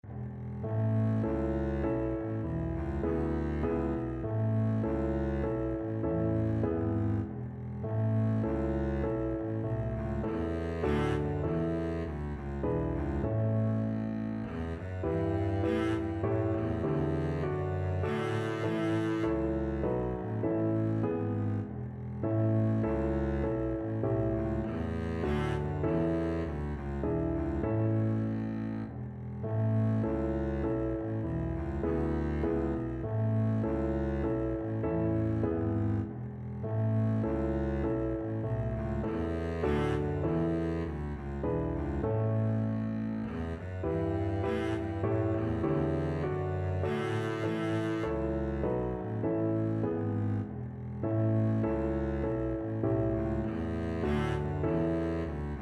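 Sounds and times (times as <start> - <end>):
double bass: 0.0 - 55.6.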